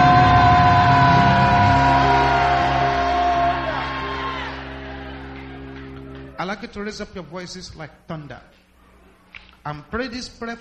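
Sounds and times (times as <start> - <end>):
audience shouting hallelujah: 0.0 - 6.3
speech: 6.5 - 8.6, 9.6 - 10.5.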